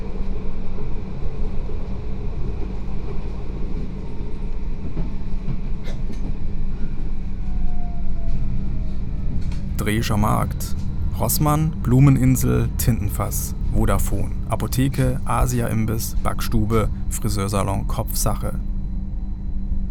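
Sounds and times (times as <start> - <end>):
tram riding through the city: 0.0 - 19.9
faint rising whine: 9.1 - 19.9
speech: 9.9 - 18.6.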